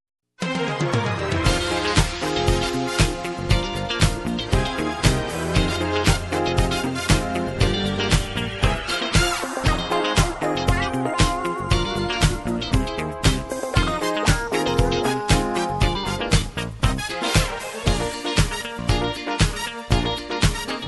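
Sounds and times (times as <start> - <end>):
disco music: 0.5 - 20.8.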